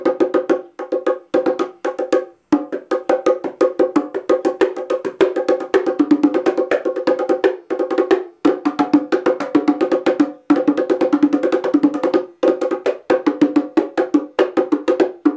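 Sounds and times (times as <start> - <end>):
custom bongo drums: 0.0 - 15.3.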